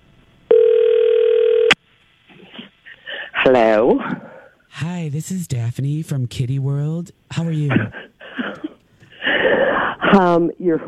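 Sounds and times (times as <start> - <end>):
telephone dial tone: 0.5 - 1.8
speech: 3.4 - 8.0, 10.1 - 10.8.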